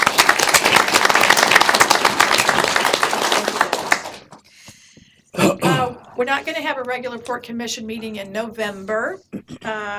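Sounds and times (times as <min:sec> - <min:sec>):
crowd applauding: 0:00.0 - 0:04.4
speech: 0:06.2 - 0:09.9.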